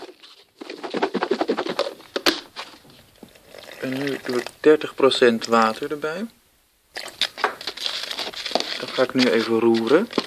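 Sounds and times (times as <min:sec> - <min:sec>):
dry ingredients shaken in a container: 0:00.0 - 0:02.8, 0:07.6 - 0:10.2
speech: 0:03.8 - 0:06.4, 0:09.0 - 0:10.2.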